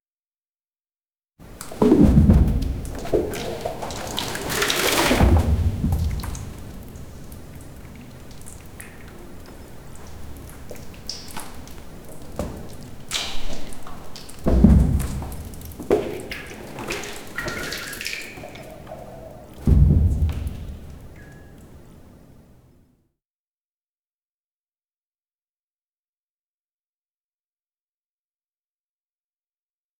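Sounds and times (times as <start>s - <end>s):
water splashing in a cave: 1.4s - 22.6s.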